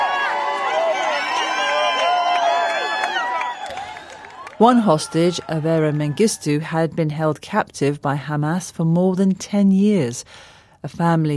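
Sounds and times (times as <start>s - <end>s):
large crowd in Tel Aviv cheering and shouting in welcome: 0.0s - 6.6s
speech: 4.6s - 11.3s.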